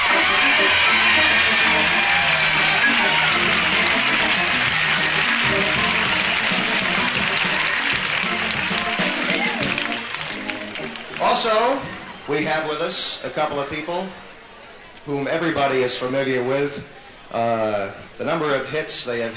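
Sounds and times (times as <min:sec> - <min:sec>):
audience applause: 0:00.0 - 0:12.0
crowd voices: 0:00.0 - 0:19.3
speech: 0:11.5 - 0:14.3, 0:15.1 - 0:19.3.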